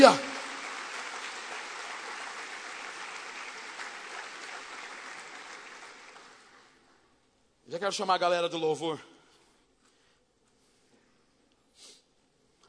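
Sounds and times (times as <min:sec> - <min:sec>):
speech: 0:00.0 - 0:00.2, 0:07.7 - 0:09.1
audience applause: 0:00.0 - 0:06.8.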